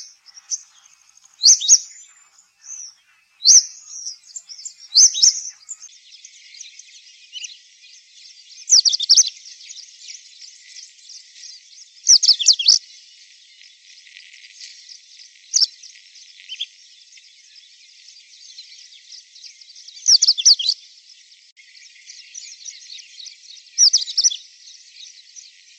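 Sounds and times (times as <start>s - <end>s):
Indian robin singing: 0.0s - 5.9s, 8.2s - 9.9s, 10.9s - 12.8s, 20.0s - 20.8s, 22.2s - 24.4s.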